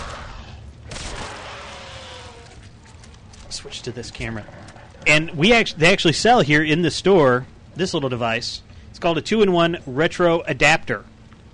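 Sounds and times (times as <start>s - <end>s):
video-game gunshot in a game store: 0.0s - 2.4s
noise: 0.0s - 11.5s
speech: 3.6s - 11.1s.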